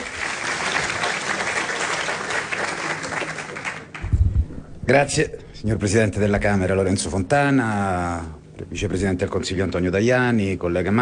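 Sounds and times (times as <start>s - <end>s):
crowd applause: 0.0s - 4.1s
speech: 4.9s - 10.9s.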